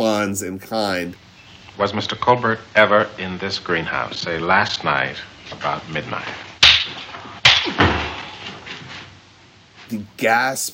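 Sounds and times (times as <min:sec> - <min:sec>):
speech: 0:00.0 - 0:07.0, 0:09.9 - 0:10.7
slap in the face: 0:06.6 - 0:08.2.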